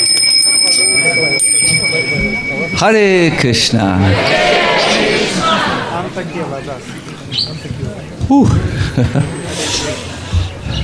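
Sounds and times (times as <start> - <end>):
theatre-style third bell: 0.0 - 3.4
busy noise: 0.0 - 10.8
speech: 2.7 - 4.6, 6.2 - 9.8
laughter: 3.8 - 10.7.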